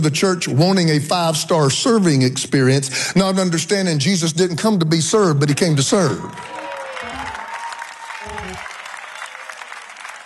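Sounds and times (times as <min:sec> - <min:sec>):
speech: 0:00.0 - 0:06.6
audience clapping: 0:06.0 - 0:10.2.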